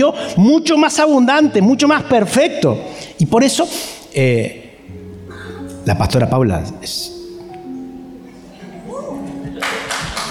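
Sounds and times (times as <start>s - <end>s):
speech: 0.0s - 4.6s, 5.8s - 7.2s
audience applause: 9.5s - 10.3s.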